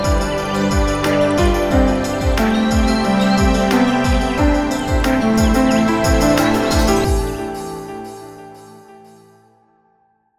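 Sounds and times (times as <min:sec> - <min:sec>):
spring nature sounds: 0:00.0 - 0:09.0
music: 0:00.0 - 0:10.3.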